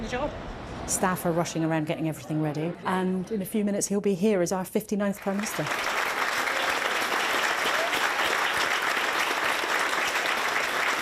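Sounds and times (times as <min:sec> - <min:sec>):
speech: 0:00.1 - 0:06.0
applause: 0:05.2 - 0:11.0.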